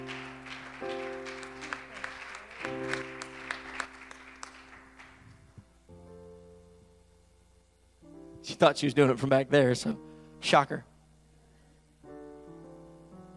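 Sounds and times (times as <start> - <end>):
audience clapping: 0.0 - 5.8
speech: 8.6 - 10.9.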